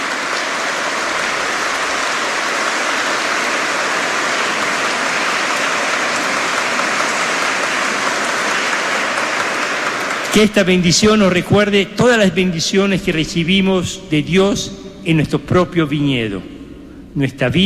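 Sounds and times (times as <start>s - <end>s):
audience applause: 0.0s - 11.7s
speech: 10.3s - 16.5s, 17.2s - 17.6s.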